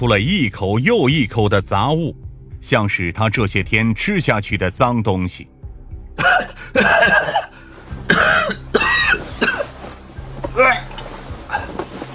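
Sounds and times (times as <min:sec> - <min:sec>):
speech: 0:00.0 - 0:05.5, 0:06.2 - 0:07.5, 0:10.6 - 0:10.9
violent coughing: 0:06.2 - 0:09.8, 0:10.5 - 0:12.1.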